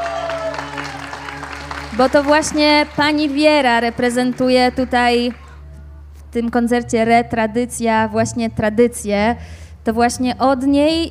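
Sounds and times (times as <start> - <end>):
audience applause: 0.0 - 5.6
speech: 2.0 - 5.4, 6.3 - 11.0.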